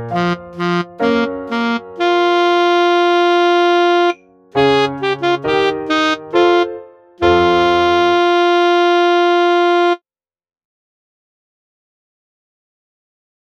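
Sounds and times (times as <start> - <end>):
cossack dance on saxophone: 0.0 - 10.0.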